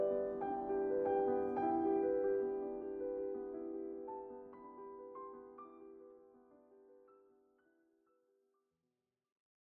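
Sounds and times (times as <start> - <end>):
prelude in G major: 0.0 - 7.4.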